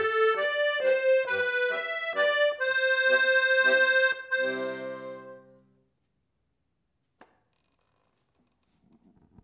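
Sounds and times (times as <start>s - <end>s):
ecossaise waltz music: 0.0s - 5.8s.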